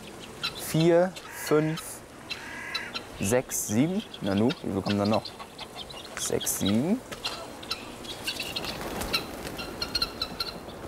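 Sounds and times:
guinea fowl calling with high-pitched chirps: 0.0s - 10.8s
steady hiss: 0.0s - 10.8s
speech: 0.7s - 1.9s, 3.2s - 5.4s, 6.2s - 7.2s
guinea fowl flapping and rustling: 4.3s - 10.8s.

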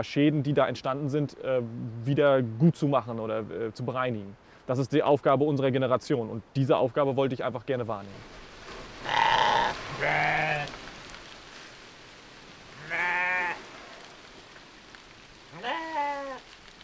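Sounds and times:
speech: 0.0s - 8.4s, 10.0s - 10.7s
steady hiss: 0.0s - 16.8s
sheep and lambs bleating: 9.0s - 10.7s, 12.8s - 13.6s, 15.5s - 16.4s.

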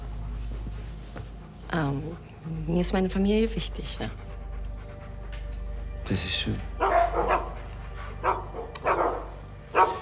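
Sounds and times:
speech: 1.7s - 4.2s, 6.1s - 6.8s
dogs barking: 3.1s - 9.9s.

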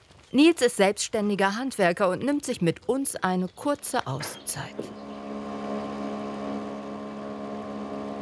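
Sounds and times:
speech: 0.3s - 5.0s
sailboat auxiliary motor droning: 3.8s - 8.2s.

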